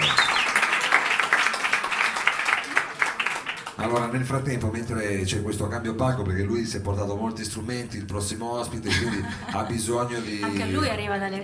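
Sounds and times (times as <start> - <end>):
audience applause: 0.0 - 4.4
speech: 3.8 - 11.4
laughter: 8.7 - 11.0.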